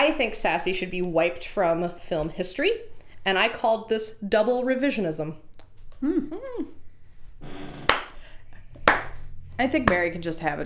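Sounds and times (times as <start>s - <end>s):
speech: 0.0s - 6.6s, 9.6s - 10.6s
person vocalizing: 6.0s - 6.8s
genuine slow clap: 7.9s - 8.2s, 8.8s - 9.2s.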